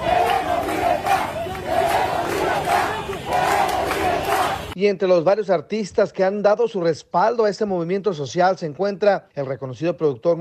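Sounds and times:
large protest crowd chanting in the street: 0.0s - 4.8s
speech: 4.8s - 10.3s.

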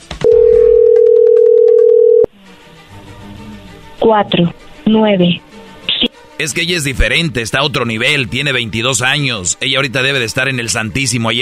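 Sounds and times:
phone line tone as a call is placed: 0.2s - 2.3s
speech: 4.0s - 5.5s, 6.4s - 11.4s.

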